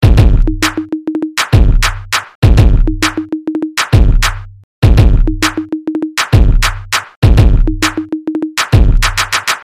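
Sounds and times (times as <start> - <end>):
music beat: 0.0 - 9.6.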